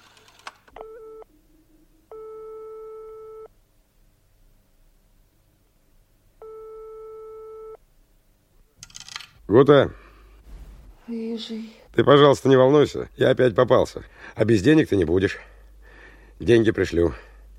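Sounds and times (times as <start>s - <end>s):
faint hum: 0.0s - 17.5s
telephone busy signal after dialing from phone booth: 0.8s - 1.4s, 2.1s - 3.5s, 6.4s - 7.8s
speech: 9.5s - 10.0s, 11.1s - 15.5s, 16.4s - 17.3s.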